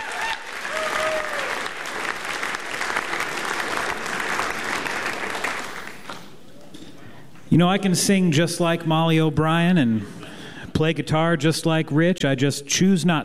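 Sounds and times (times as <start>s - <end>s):
audience applause: 0.0s - 6.3s
speech: 7.6s - 10.2s, 10.8s - 13.2s.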